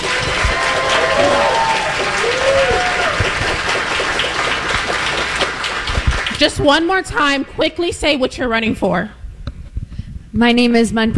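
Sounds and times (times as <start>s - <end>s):
audience applause: 0.0s - 6.6s
speech: 6.4s - 9.2s, 10.4s - 11.1s.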